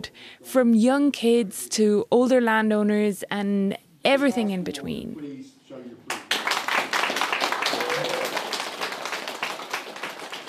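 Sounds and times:
speech: 0:00.0 - 0:05.6
audience applause: 0:06.1 - 0:10.4.

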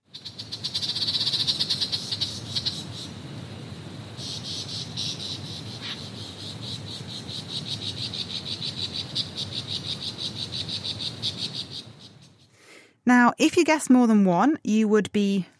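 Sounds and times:
male superb lyrebird mimicking many calls: 0:00.1 - 0:03.2, 0:04.2 - 0:12.4
speech: 0:13.1 - 0:15.5.

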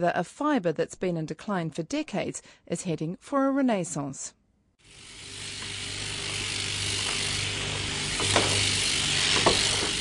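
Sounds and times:
speech: 0:00.0 - 0:05.1
electric shears shearing wool off a sheep: 0:04.8 - 0:09.9.

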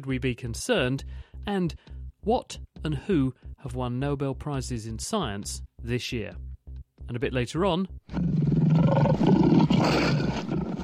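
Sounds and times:
speech: 0:00.0 - 0:06.5, 0:07.1 - 0:10.5
lion roaring on the South African savannah: 0:08.1 - 0:10.8.

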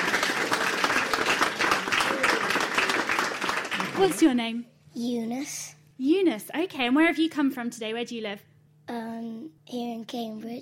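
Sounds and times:
audience applause: 0:00.0 - 0:04.4
speech: 0:04.0 - 0:10.5.

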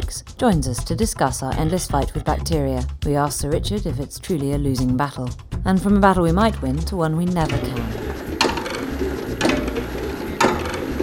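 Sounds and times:
speech: 0:00.1 - 0:08.2
mechanical clock mechanism ticking: 0:00.5 - 0:02.4, 0:07.2 - 0:11.0
low steady hum: 0:07.4 - 0:11.0.

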